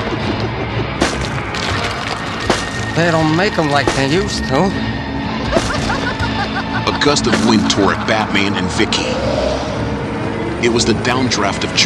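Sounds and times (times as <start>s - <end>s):
steady grinding rumble: 0.0s - 11.8s
cracked stone gargoyle breaking apart: 1.0s - 4.3s
speech: 3.0s - 5.7s, 6.9s - 9.7s, 10.6s - 11.8s
laughter: 5.4s - 9.1s.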